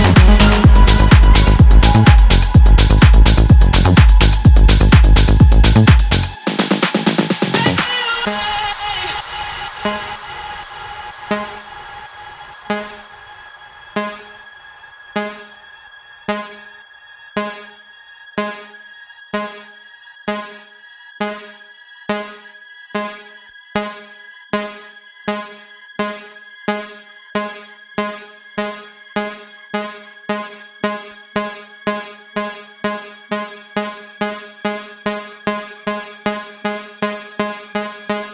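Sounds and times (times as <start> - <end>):
tech house intro: 0.0 - 16.7.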